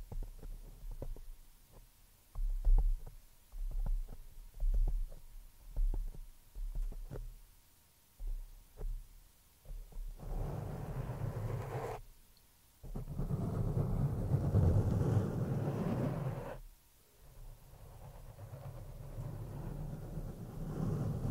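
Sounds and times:
scratching and rubbing on a microphone: 0.0 - 1.8, 2.4 - 7.3, 9.7 - 12.0, 12.8 - 16.6, 17.2 - 21.3.

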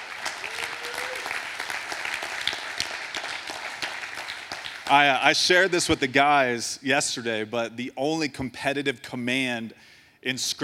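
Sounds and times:
audience clapping: 0.0 - 5.8
speech: 4.9 - 10.6.

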